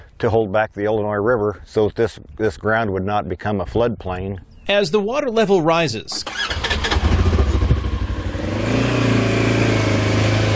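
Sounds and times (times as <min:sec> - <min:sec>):
speech: 0:00.2 - 0:06.6
all-terrain vehicle engine on a levee along the Illinois River: 0:06.2 - 0:10.5.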